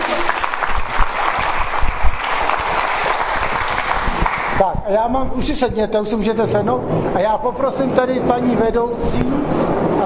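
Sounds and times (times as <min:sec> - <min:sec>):
audience clapping: 0:00.0 - 0:04.7
speech: 0:04.9 - 0:10.0.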